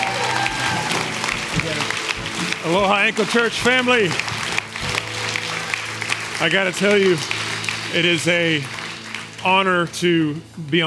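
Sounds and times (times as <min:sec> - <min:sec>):
church congregation applause welcoming a guest pastor: 0:00.0 - 0:10.8
speech: 0:02.7 - 0:04.4, 0:06.4 - 0:08.8, 0:09.4 - 0:10.8.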